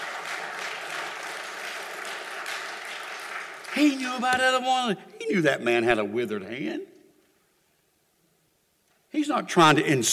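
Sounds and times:
crowd clapping: 0:00.0 - 0:04.8
speech: 0:03.8 - 0:06.9, 0:09.1 - 0:10.1.

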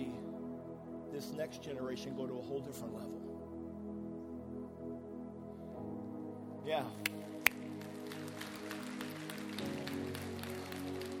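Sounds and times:
sustained keyboard chords: 0:00.0 - 0:11.1
speech: 0:01.2 - 0:03.5, 0:06.7 - 0:07.3
audience clapping: 0:07.0 - 0:11.1.

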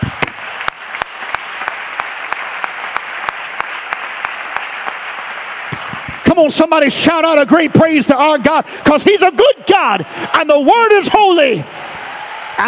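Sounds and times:
audience clapping hands: 0:00.0 - 0:07.5, 0:10.4 - 0:12.6
speech: 0:06.4 - 0:11.8.

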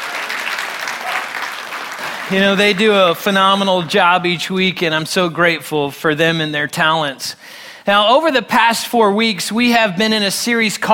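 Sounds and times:
audience applauding worship team: 0:00.0 - 0:03.3
speech: 0:02.3 - 0:10.9.

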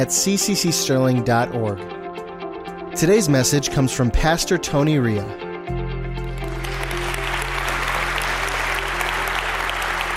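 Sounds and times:
speech: 0:00.0 - 0:02.0, 0:03.0 - 0:05.5
audience applause: 0:06.2 - 0:10.1.

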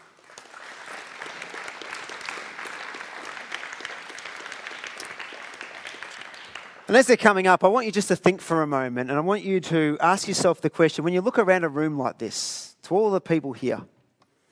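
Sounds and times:
audience applauding at a morning gathering: 0:00.0 - 0:07.4
speech: 0:06.9 - 0:14.0.

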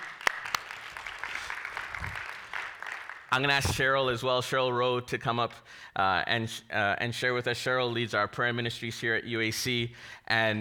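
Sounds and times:
audience applause: 0:00.0 - 0:03.3
speech: 0:03.3 - 0:10.5.

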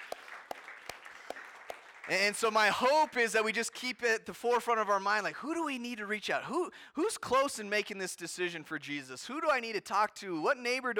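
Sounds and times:
audience applause: 0:00.0 - 0:03.1
speech: 0:02.1 - 0:10.9.

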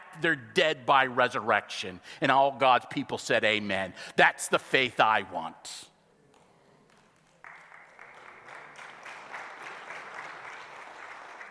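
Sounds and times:
speech: 0:00.1 - 0:05.9
audience applauding: 0:06.8 - 0:11.5.

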